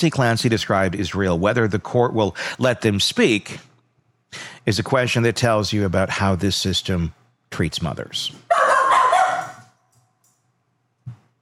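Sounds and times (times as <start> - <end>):
speech: 0.0 - 3.7, 4.3 - 8.5
dog barking: 8.5 - 9.7.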